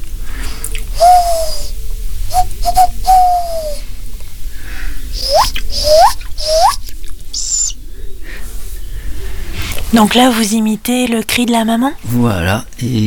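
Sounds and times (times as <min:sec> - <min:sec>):
low hiss: 0:00.0 - 0:13.0
tawny owl chicks calling for their mother: 0:00.8 - 0:03.8, 0:05.0 - 0:08.2
speech: 0:02.6 - 0:03.8, 0:10.0 - 0:13.0.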